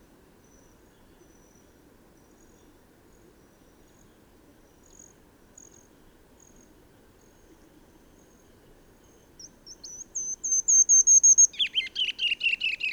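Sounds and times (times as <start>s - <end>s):
bird singing bright down-slurred chirped notes: 9.4s - 12.9s.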